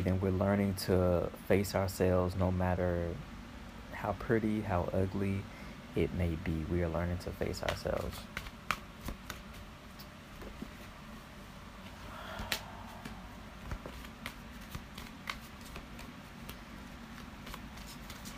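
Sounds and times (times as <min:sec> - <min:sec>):
speech: 0:00.0 - 0:03.3, 0:04.0 - 0:08.5
tarot cards shuffled for a collective reading: 0:07.5 - 0:10.8, 0:12.4 - 0:18.3.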